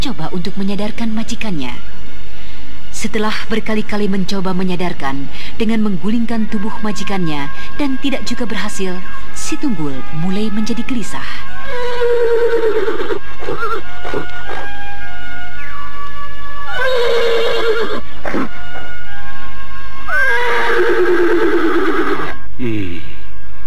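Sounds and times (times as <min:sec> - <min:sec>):
speech: 0:00.0 - 0:02.1, 0:03.0 - 0:14.8, 0:17.7 - 0:18.6
horse neighing in a forest: 0:11.7 - 0:14.6, 0:16.7 - 0:18.0, 0:20.1 - 0:22.4.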